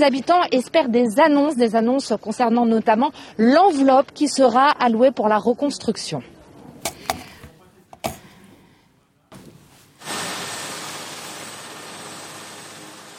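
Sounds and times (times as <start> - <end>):
speech: 0.0 - 6.4
helicopter: 11.2 - 13.1.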